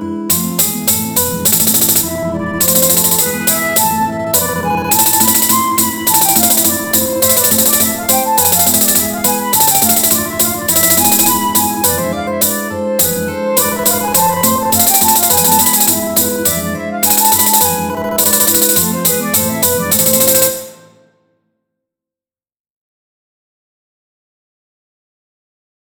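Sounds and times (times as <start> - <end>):
Maltese folk song and dance music: 0.3 - 20.8.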